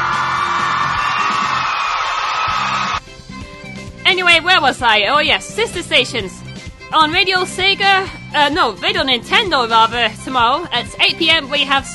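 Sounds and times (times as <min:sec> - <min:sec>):
crowd cheering and whooping: 0:00.0 - 0:03.0
speech: 0:04.4 - 0:11.9.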